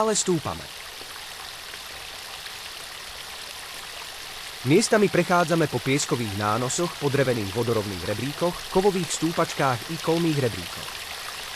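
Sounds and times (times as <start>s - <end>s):
speech: 0.0s - 0.9s, 4.6s - 11.0s
waterfall in a rocky gorge: 0.0s - 11.5s.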